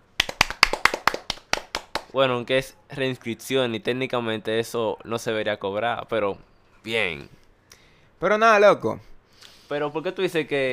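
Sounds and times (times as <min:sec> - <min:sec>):
hand clapping: 0:00.0 - 0:02.2
speech: 0:02.1 - 0:07.4, 0:08.2 - 0:09.1, 0:09.7 - 0:10.7.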